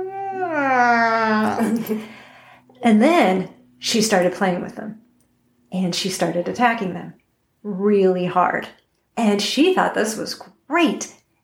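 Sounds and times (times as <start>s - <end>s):
voice imitating a cat growling: 0.0s - 1.6s
speech: 1.6s - 2.2s, 2.8s - 5.0s, 5.7s - 11.2s.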